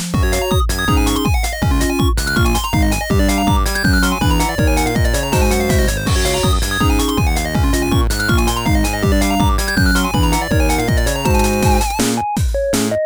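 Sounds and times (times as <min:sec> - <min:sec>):
game start sound: 0:00.1 - 0:13.0.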